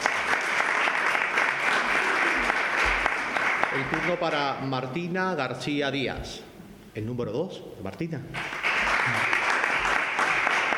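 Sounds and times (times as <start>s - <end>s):
applause: 0.0s - 4.6s, 8.3s - 10.7s
speech: 3.8s - 9.2s.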